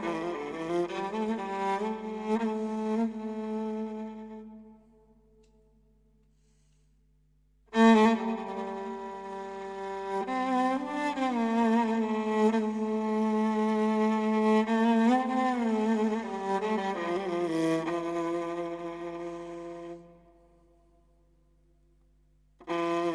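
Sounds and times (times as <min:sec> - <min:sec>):
Arabo-Andalusian Sufi taqsim improvisation on violin: 0:00.0 - 0:04.9, 0:07.7 - 0:20.4, 0:22.6 - 0:23.1.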